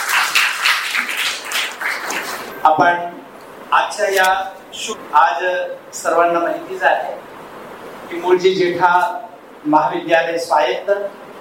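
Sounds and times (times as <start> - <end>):
audience applause welcoming guests to a college programme on Sanskrit literature: 0.0 - 2.5
speech: 2.6 - 7.3, 8.1 - 11.2.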